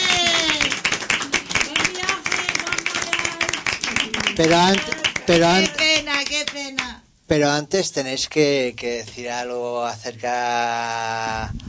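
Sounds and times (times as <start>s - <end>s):
group clapping in ovation: 0.0s - 7.0s
speech: 4.4s - 11.6s.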